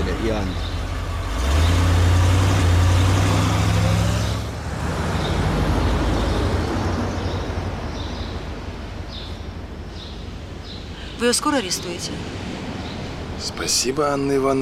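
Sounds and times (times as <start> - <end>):
car starting and driving away: 0.0 - 8.6
speech: 0.2 - 0.8, 11.2 - 12.5, 13.4 - 14.6.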